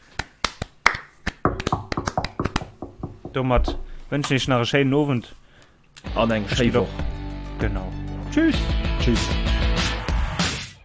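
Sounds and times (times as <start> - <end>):
hand clapping: 0.0 - 3.2
speech: 3.4 - 5.4, 6.1 - 7.0, 7.6 - 9.6.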